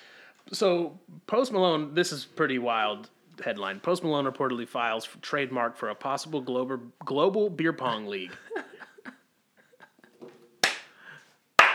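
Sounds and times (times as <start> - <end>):
speech: 0.5 - 8.7
laughter: 8.1 - 10.3
slow clap: 10.1 - 11.7.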